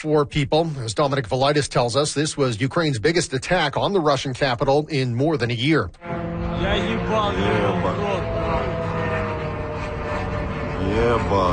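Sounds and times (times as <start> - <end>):
speech: 0.0 - 8.2, 10.9 - 11.5
drone flying over Khimki: 6.0 - 11.5.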